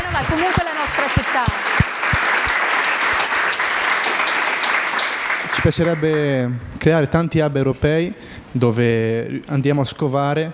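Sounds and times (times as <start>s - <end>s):
applause: 0.0s - 6.4s
speech: 0.2s - 1.9s, 5.6s - 10.5s.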